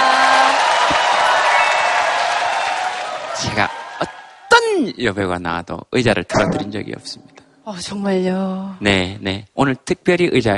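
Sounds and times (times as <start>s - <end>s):
audience applause: 0.0s - 4.5s
speech: 3.5s - 10.5s.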